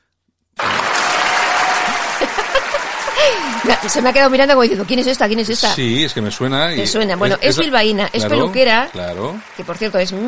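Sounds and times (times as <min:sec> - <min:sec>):
applause: 0:00.6 - 0:10.2
laughter: 0:00.7 - 0:04.3, 0:05.7 - 0:09.3
speech: 0:03.3 - 0:10.2.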